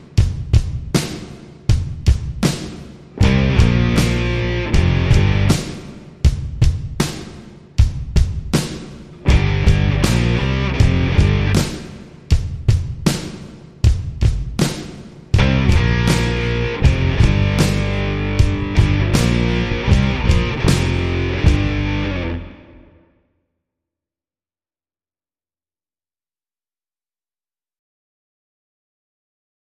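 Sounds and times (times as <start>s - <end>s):
rock underscore music: 0.0s - 23.0s.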